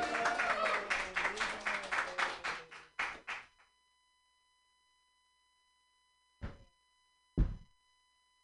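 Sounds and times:
voices cheering: 0.0 - 2.9
audience applause: 0.0 - 3.5
sharp knocks: 7.4 - 7.7.

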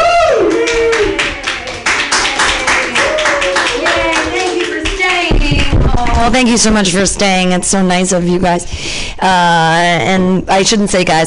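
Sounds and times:
audience clapping: 0.0 - 6.4
speech: 6.3 - 11.2.

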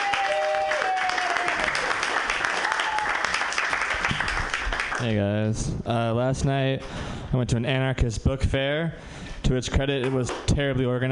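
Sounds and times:
audience applause greeting a comedian at a live comedy show: 0.0 - 5.1
speech: 5.0 - 11.0.

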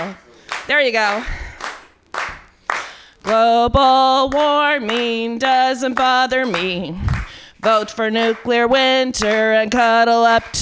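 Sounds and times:
speech: 0.0 - 1.4, 3.2 - 10.5
audience clapping: 0.0 - 10.5.

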